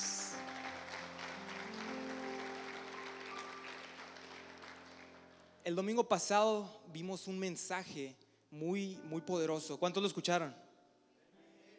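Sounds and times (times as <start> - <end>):
audience applause: 0.0 - 5.5
speech: 5.6 - 10.6.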